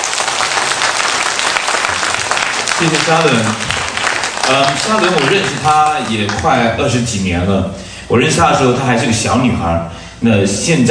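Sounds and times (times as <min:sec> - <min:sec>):
audience applause at a church gathering welcoming a pastor: 0:00.0 - 0:06.6
speech: 0:02.8 - 0:03.7, 0:04.5 - 0:10.8.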